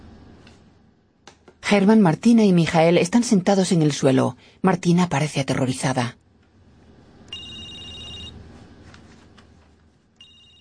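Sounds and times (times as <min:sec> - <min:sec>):
speech: 0:01.7 - 0:06.2
telephone ringing: 0:07.3 - 0:08.4, 0:10.2 - 0:10.5.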